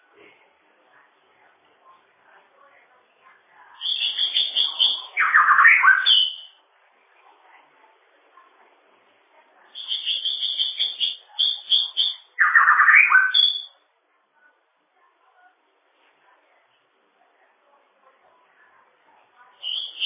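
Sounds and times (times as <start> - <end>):
bird song: 3.8 - 6.6, 9.7 - 13.8, 19.6 - 20.0.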